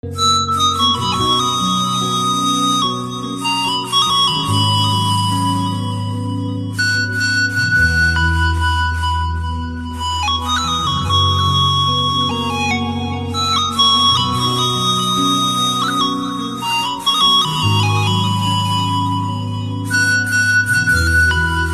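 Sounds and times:
ringtone: 0.0 - 21.7.

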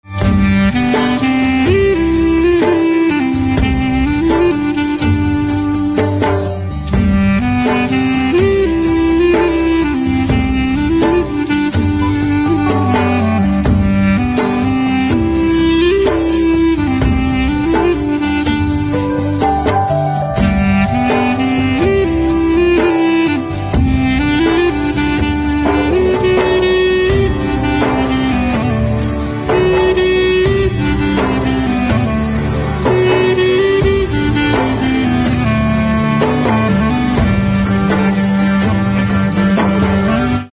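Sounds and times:
saxophone instrumental ringtone: 0.0 - 40.5.

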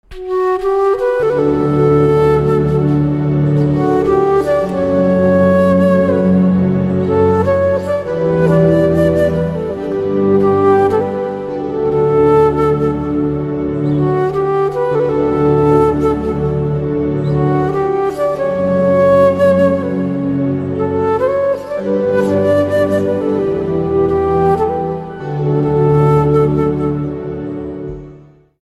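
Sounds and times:
flute instrumental ringtone: 0.2 - 27.6.

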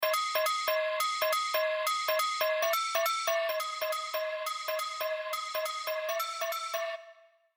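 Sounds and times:
spectral bell: 0.0 - 7.3.

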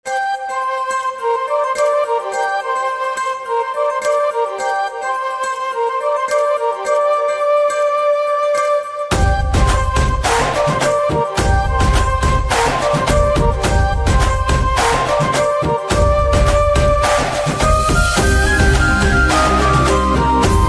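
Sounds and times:
flute theme: 0.0 - 20.6.

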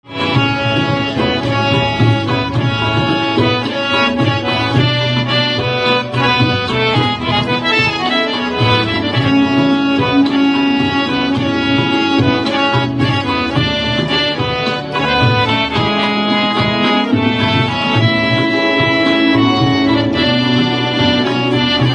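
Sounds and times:
harmonium: 0.0 - 21.9.

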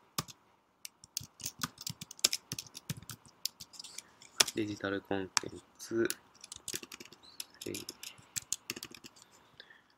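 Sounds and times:
typing a product name on a computer keyboard: 1.0 - 4.6, 6.4 - 9.2
speech: 4.6 - 6.3, 7.7 - 8.0.

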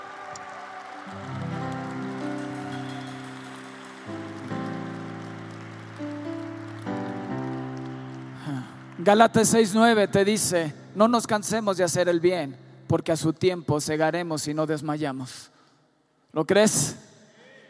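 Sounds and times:
applause: 0.0 - 10.6
speech: 9.0 - 15.5, 16.4 - 16.9.

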